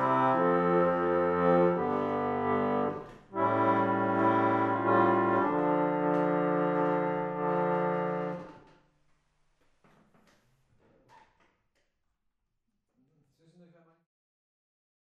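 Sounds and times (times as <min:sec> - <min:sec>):
harmonium: 0:00.0 - 0:08.6.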